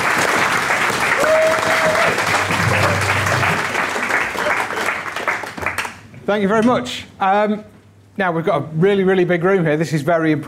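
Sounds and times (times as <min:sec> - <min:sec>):
large audience round of applause: 0:00.0 - 0:06.0
speech: 0:06.3 - 0:10.4.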